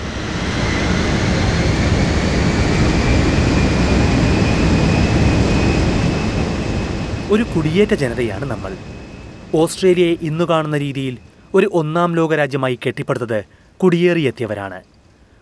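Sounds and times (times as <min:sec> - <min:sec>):
airplane landing: 0:00.0 - 0:12.2
speech: 0:07.3 - 0:14.9.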